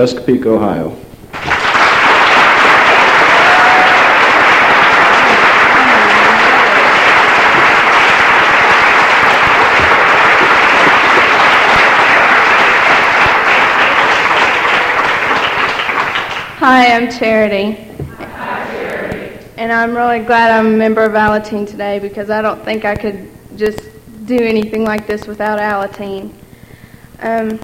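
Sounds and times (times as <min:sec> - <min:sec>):
speech: 0:00.0 - 0:01.0, 0:16.7 - 0:17.9, 0:19.6 - 0:26.4, 0:27.2 - 0:27.6
audience applause: 0:01.3 - 0:16.6, 0:18.2 - 0:19.4.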